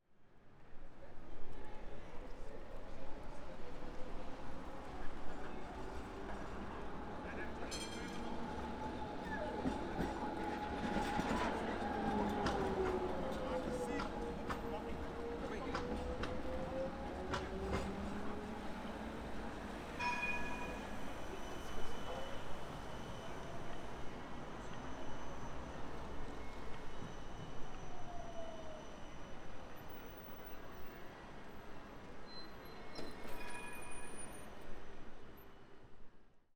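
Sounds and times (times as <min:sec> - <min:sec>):
Amsterdam tram passing: 0:03.6 - 0:30.1.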